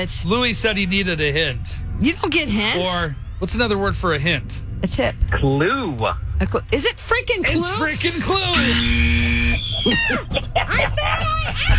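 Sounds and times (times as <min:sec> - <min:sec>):
speech: 0:00.0 - 0:11.7
person screaming during a two-player trivia quiz game: 0:09.8 - 0:10.2.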